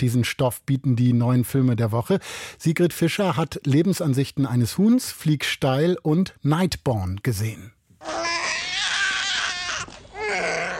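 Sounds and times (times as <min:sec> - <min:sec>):
speech: 0:00.0 - 0:08.4
inconsolable newborn crying in a film: 0:08.0 - 0:10.7.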